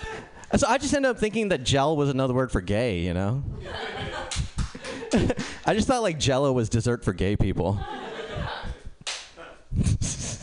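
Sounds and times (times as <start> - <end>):
laughter: 0.0 - 0.5, 3.6 - 5.6, 7.8 - 10.4
speech: 0.5 - 4.0, 5.1 - 8.1
single hand clap: 9.0 - 9.3.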